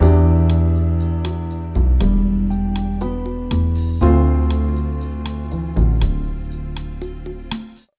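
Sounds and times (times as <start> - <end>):
jazz music: 0.0 - 7.9.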